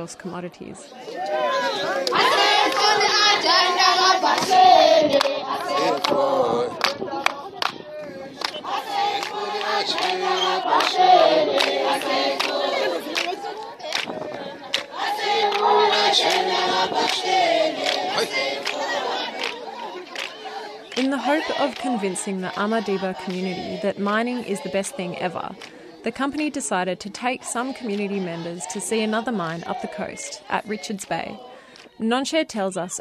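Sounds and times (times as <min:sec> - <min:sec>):
speech: 0:00.0 - 0:07.2, 0:09.8 - 0:12.6, 0:15.6 - 0:18.7, 0:21.0 - 0:32.9
Amadiba community crowd chanting and singing in unison: 0:00.0 - 0:32.0
crowd hand claps: 0:04.3 - 0:06.2, 0:06.8 - 0:07.8, 0:08.4 - 0:16.4, 0:17.0 - 0:18.8, 0:19.4 - 0:21.1.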